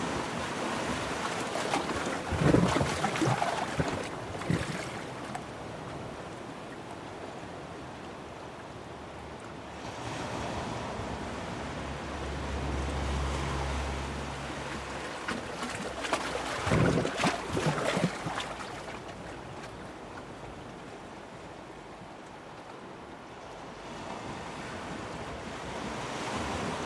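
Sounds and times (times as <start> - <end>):
wind: 0.0 - 26.8
sharp glugs and splashes: 0.6 - 6.9, 13.7 - 20.3
sea water surging into a small rocky hollow: 1.0 - 7.0, 14.6 - 20.1.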